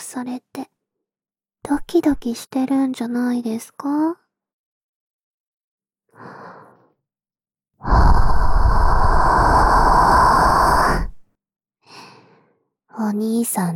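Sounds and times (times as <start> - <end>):
speech: 0.1 - 0.8, 1.7 - 4.2, 6.2 - 6.6, 13.0 - 13.7
breathing close to the ear: 6.1 - 7.0, 7.8 - 11.2, 11.8 - 12.8.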